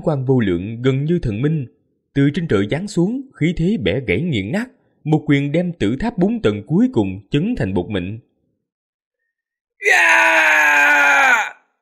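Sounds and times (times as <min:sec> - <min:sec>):
speech: 0:00.0 - 0:08.3, 0:09.8 - 0:10.5
man screaming in agony: 0:09.8 - 0:11.8.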